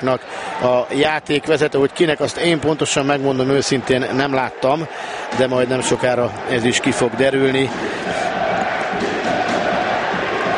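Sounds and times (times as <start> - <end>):
speech: 0.0 - 8.4
home crowd cheering at a football match: 0.0 - 10.5.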